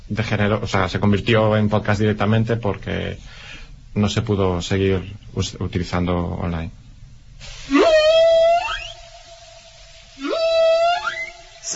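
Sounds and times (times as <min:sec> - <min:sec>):
speech: 0:00.1 - 0:06.8
whale song: 0:07.7 - 0:11.7.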